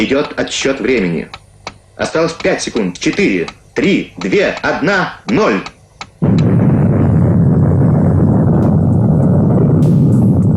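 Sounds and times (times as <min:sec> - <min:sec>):
speech: 0:00.0 - 0:01.4, 0:02.0 - 0:06.4
underground nuclear explosion: 0:06.2 - 0:10.5.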